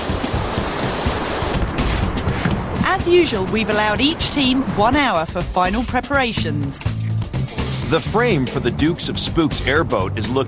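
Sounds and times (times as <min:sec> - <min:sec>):
whitewater rapids of the Kern River in California: 0:00.0 - 0:05.3
speech: 0:03.0 - 0:07.0, 0:07.9 - 0:10.4.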